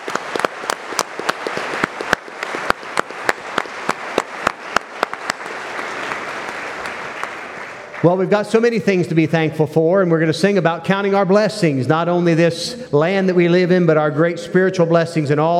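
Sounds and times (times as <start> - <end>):
audience applause: 0.0 - 8.6
speech: 8.0 - 15.5.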